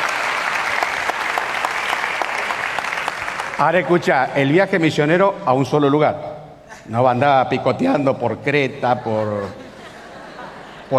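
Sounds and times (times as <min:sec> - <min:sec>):
audience applause: 0:00.0 - 0:04.1
speech: 0:03.6 - 0:09.6
laughter: 0:08.7 - 0:10.9.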